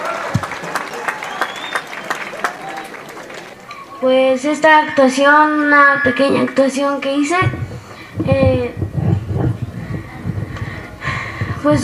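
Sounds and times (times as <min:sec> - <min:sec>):
audience applause: 0:00.0 - 0:04.0
speech: 0:04.0 - 0:07.6, 0:08.2 - 0:08.8, 0:11.6 - 0:11.8.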